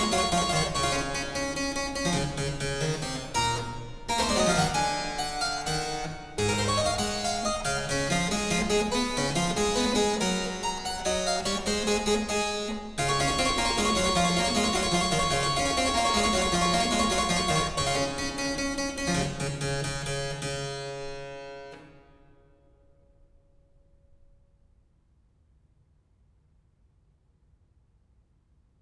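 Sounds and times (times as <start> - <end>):
piano sonata in D major: 0.0 - 20.6.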